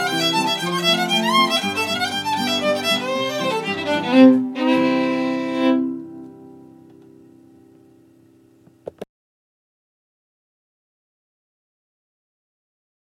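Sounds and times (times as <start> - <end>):
fiddle playing in C: 0.0 - 6.5.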